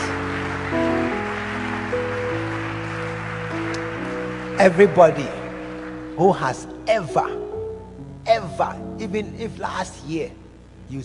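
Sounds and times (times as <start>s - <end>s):
audience clapping: 0.0s - 7.5s
low sustained musical notes: 0.0s - 11.0s
speech: 4.6s - 5.4s, 6.2s - 7.4s, 8.2s - 11.0s.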